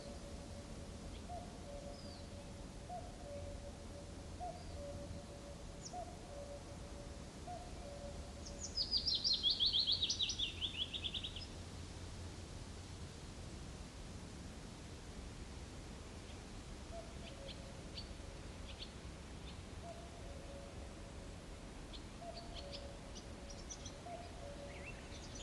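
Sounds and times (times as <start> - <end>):
cuckoo calling: 0.0 - 11.4, 16.9 - 17.7, 19.8 - 20.8, 22.2 - 25.4
birds singing: 0.0 - 11.5, 16.2 - 20.8, 21.9 - 25.4
willow warbler singing: 0.0 - 11.5, 21.8 - 25.4
light wind in a summer forest: 0.0 - 25.4.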